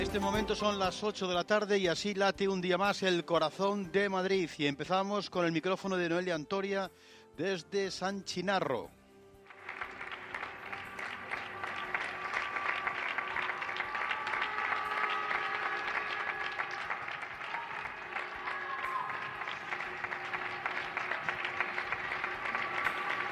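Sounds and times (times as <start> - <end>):
speech: 0.1 - 9.0
neighbourhood applause for healthcare workers: 9.5 - 23.2.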